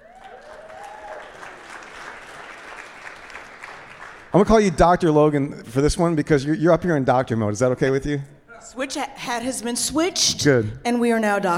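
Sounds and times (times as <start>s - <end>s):
audience applause welcoming an academic expert at a community talk on philanthropy: 0.0s - 4.6s
speech: 4.3s - 11.5s.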